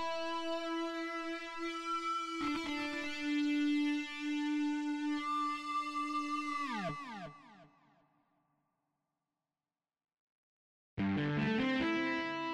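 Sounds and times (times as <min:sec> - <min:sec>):
guitars: 0:00.0 - 0:07.4, 0:11.0 - 0:12.5.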